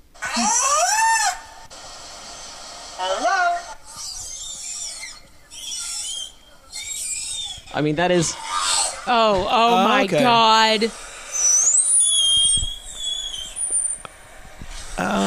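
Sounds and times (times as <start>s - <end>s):
whale vocalizing: 0.2s - 1.6s, 3.8s - 9.2s, 10.9s - 14.0s
speech: 0.4s - 0.8s, 7.8s - 11.0s.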